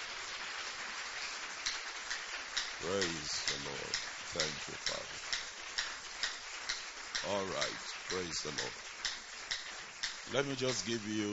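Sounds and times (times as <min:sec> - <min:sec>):
audience clapping: 0:00.0 - 0:11.3
speech: 0:02.8 - 0:05.4, 0:07.2 - 0:08.9, 0:10.3 - 0:11.3.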